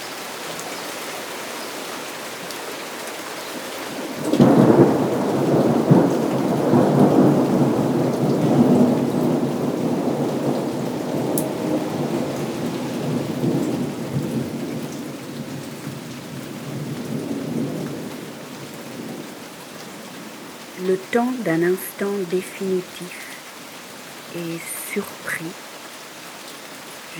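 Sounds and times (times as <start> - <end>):
raindrops falling on dusty paving stones: 0.0 - 27.1
thunder rumbling: 4.2 - 23.4
speech: 21.2 - 23.2, 24.4 - 25.7.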